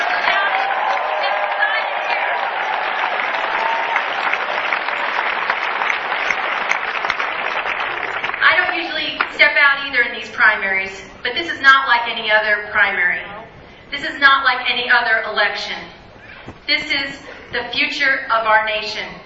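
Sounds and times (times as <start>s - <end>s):
rally crowd cheering: 0.0s - 9.3s
speech: 10.5s - 13.3s, 13.9s - 15.9s, 16.7s - 19.2s.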